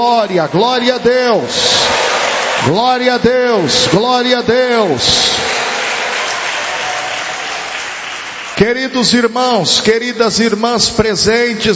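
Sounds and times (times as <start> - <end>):
speech: 0.0 - 5.7, 8.6 - 11.7
audience clapping hands: 0.4 - 9.2.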